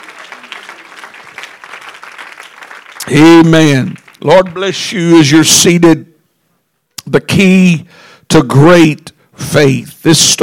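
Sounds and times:
audience clapping hands: 0.0 - 5.0
speech: 3.1 - 6.1, 7.1 - 10.4.

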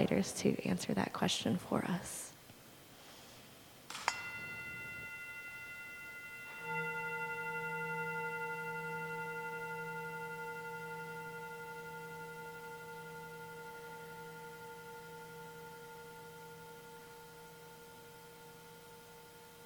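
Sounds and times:
speech: 0.0 - 2.2
bell ringing: 3.9 - 19.6.

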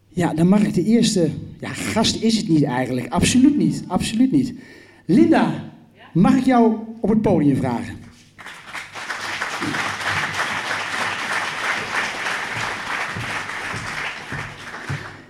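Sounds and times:
speech: 0.2 - 8.0
audience applause: 8.4 - 15.2.

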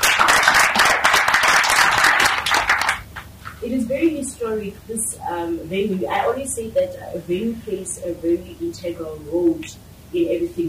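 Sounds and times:
audience applause: 0.0 - 3.2
speech: 4.0 - 10.6.

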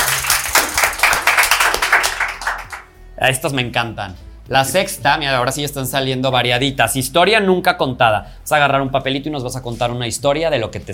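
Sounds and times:
audience applause: 0.0 - 2.8
speech: 3.2 - 10.9.

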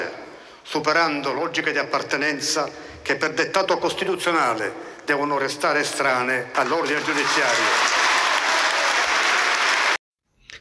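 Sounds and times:
speech: 0.0 - 8.0
parliament applause: 6.6 - 10.0.

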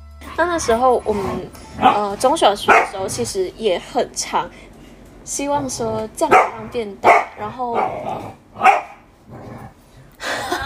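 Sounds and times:
speech: 0.4 - 4.7, 5.3 - 8.7
dog barking: 1.8 - 3.2, 6.3 - 9.1
laughter: 10.2 - 10.6.

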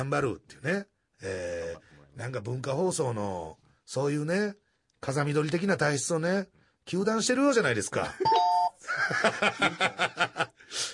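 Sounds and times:
speech: 0.0 - 10.9
laughter: 8.0 - 10.6
electronic doorbell chime: 8.2 - 8.8.

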